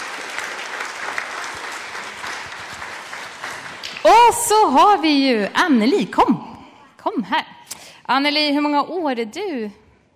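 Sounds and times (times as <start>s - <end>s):
room full of people clapping: 0.0s - 5.0s
speech: 4.0s - 7.5s, 8.1s - 9.8s.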